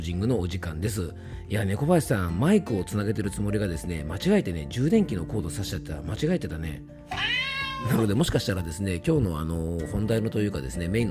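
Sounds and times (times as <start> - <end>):
speech: 0.0 - 7.2, 7.8 - 11.0
cat meowing: 7.1 - 8.1.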